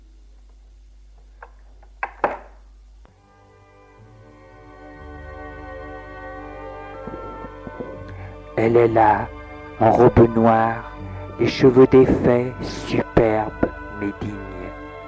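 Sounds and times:
door opening: 7.0s - 8.2s
speech: 8.6s - 13.3s.

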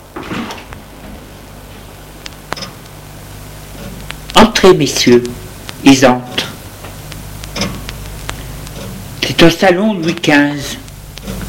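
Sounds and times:
door being opened: 0.0s - 0.8s
speech: 4.6s - 6.5s, 9.4s - 10.8s.

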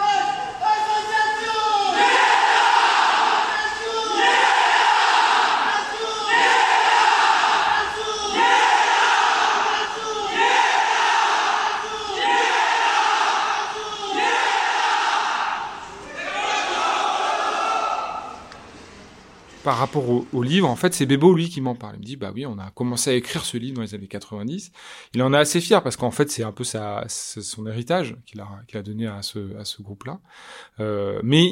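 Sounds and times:
group call-and-response ceremonial chanting: 0.1s - 18.5s
speech: 19.7s - 31.5s.

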